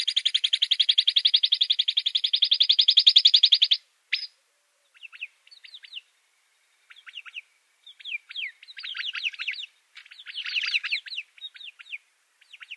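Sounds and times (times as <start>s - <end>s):
Arabian babbler chattering calls: 0.0s - 4.3s, 6.9s - 12.7s.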